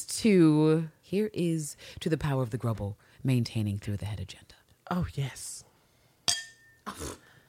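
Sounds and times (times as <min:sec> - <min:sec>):
speech: 0:00.0 - 0:05.7, 0:06.9 - 0:07.2
glasses clinking in a toast: 0:06.2 - 0:06.9.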